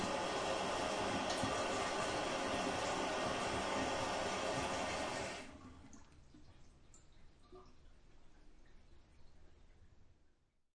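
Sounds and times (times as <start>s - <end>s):
household toilet flushing: 0.0s - 6.1s
toilet cistern running and refilling in a bathroom: 0.0s - 7.6s.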